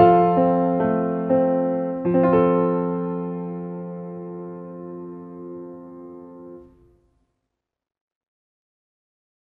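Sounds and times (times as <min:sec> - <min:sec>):
piano: 0:00.0 - 0:07.2.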